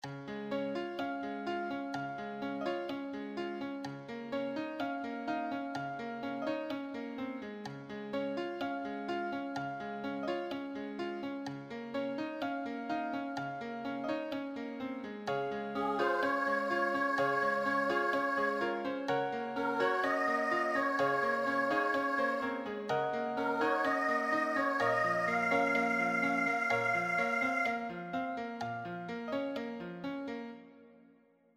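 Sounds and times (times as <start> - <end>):
musical accompaniment: 0.0 - 30.7.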